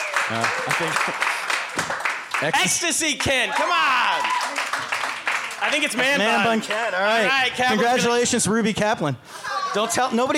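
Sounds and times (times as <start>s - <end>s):
cheers and whoops: 0.0s - 1.0s, 3.3s - 4.8s
crowd clapping: 0.0s - 7.3s
speech: 0.3s - 4.9s, 5.6s - 10.3s.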